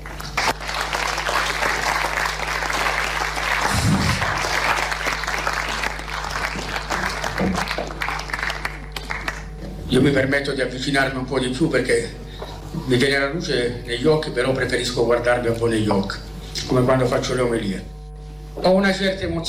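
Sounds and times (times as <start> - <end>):
audience applause: 0.0 - 9.5
speech: 10.0 - 12.2, 12.9 - 18.0, 18.6 - 19.4.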